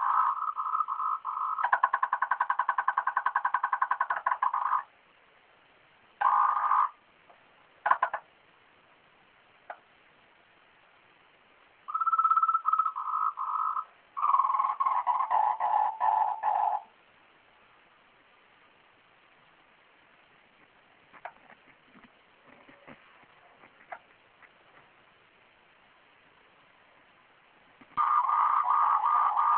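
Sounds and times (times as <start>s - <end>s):
frog: 0.0s - 4.9s, 6.2s - 7.0s, 7.8s - 8.3s, 11.9s - 16.9s, 28.0s - 29.5s.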